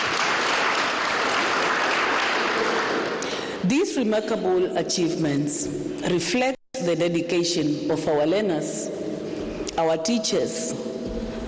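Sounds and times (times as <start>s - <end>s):
audience clapping: 0.0s - 3.6s
speech: 3.7s - 8.9s, 9.8s - 10.9s.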